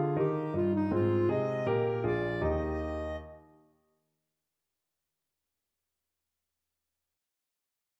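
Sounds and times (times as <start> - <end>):
hornpipe played on clarinet: 0.0 - 3.4.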